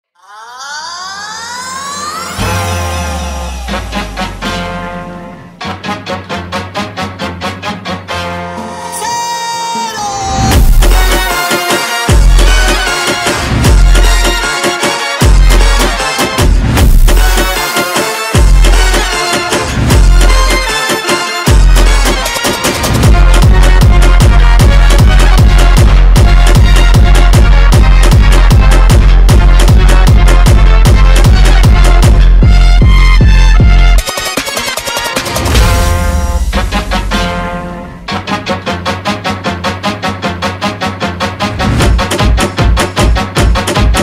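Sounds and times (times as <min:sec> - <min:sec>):
Mexican phonk sped up: 0:00.2 - 0:09.4, 0:10.4 - 0:44.0.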